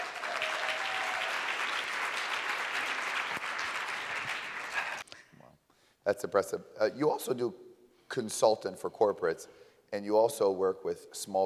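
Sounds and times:
crowd applause: 0.0 - 5.1
speech: 6.1 - 11.4.

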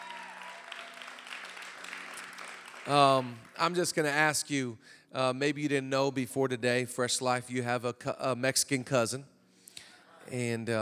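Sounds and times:
large crowd cheering with scattered shouts: 0.0 - 1.0
large crowd clapping: 0.0 - 4.2
speech: 2.8 - 9.3, 10.3 - 10.8.

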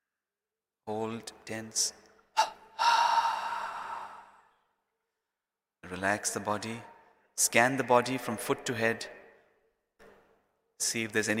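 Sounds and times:
speech: 0.9 - 2.0, 5.9 - 9.2, 10.8 - 11.3
airy inhalation: 2.4 - 4.6
sharp breath intake: 2.4 - 4.6.

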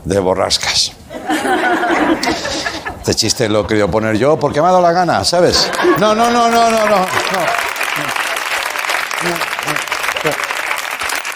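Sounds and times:
speech: 0.0 - 7.6
laughter: 1.1 - 10.8
applause: 5.7 - 11.3.

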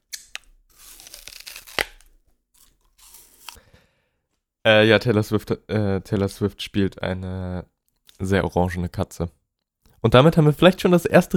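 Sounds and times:
biting into a crisp apple: 0.0 - 3.6
speech: 4.7 - 9.4, 10.0 - 11.3.

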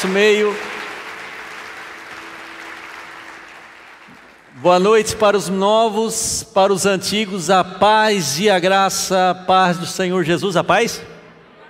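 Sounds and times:
speech: 0.0 - 0.7, 4.6 - 11.1
audience applauding: 0.0 - 4.9.

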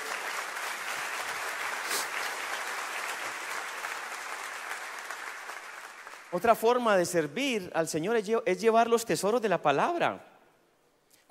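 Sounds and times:
audience applause: 0.0 - 6.6
speech: 6.3 - 10.3.

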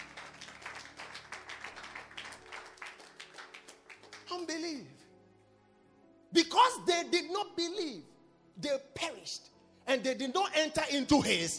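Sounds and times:
audience clapping: 0.0 - 4.7
speech: 4.4 - 5.0, 6.3 - 11.5.

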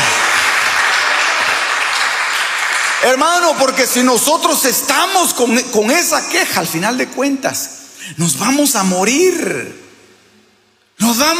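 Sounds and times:
audience applauding: 0.0 - 3.6
speech: 3.1 - 9.8, 11.0 - 11.3.

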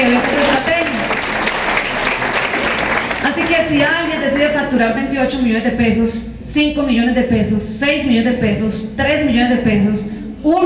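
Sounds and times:
audience applause: 0.0 - 3.6
speech: 3.7 - 10.6.

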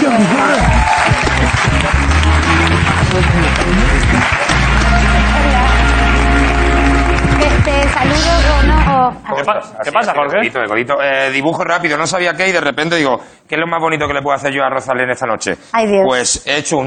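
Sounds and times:
audience applause: 0.0 - 9.1
speech: 9.5 - 16.8.

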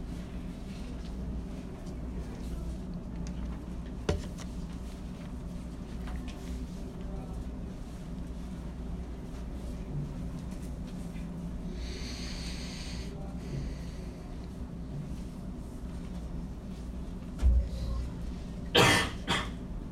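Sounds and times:
low murmur: 0.0 - 19.9
person sneezing: 18.8 - 19.6.

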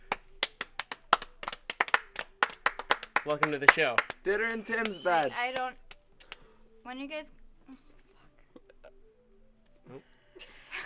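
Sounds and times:
applause for a studio guest on a St. Patrick's Day holiday show: 0.0 - 6.6
speech: 3.2 - 5.8, 6.9 - 7.9.

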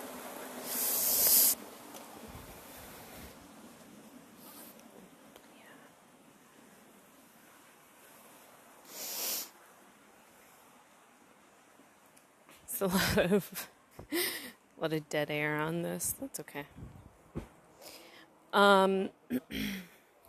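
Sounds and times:
flowing water: 0.0 - 14.6
speech: 12.8 - 14.2, 14.8 - 17.0, 18.5 - 19.8.

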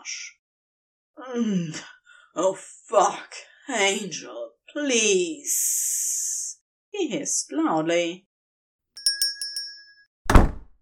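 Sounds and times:
speech: 0.0 - 0.3, 1.2 - 6.2, 7.0 - 8.3
small bell on front door jingling: 9.0 - 10.0
front door slamming: 10.3 - 10.7.

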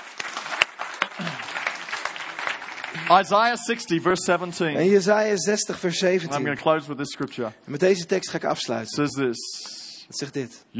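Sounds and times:
audience applauding: 0.0 - 4.2
speech: 3.0 - 10.7.

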